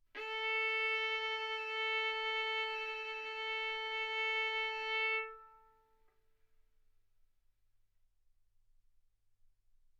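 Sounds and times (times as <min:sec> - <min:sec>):
violin arco on A string: 0:00.1 - 0:05.9.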